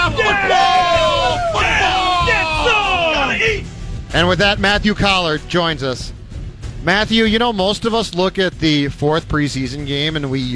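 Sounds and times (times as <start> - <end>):
crowd roar: 0.0 - 3.6
radio sounder voices yelling and whooping: 0.0 - 3.6
speech: 4.2 - 6.2, 6.8 - 10.5.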